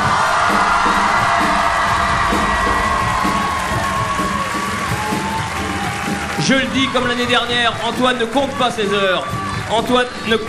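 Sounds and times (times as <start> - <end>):
low thumping pulse: 0.0 - 5.8
audience ovation with cheering and whoops at a show: 0.0 - 10.4
speech: 6.5 - 10.4.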